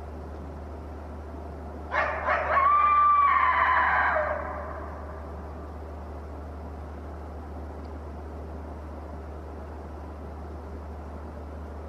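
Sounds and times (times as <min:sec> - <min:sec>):
lone coyote howling: 0:01.9 - 0:05.3.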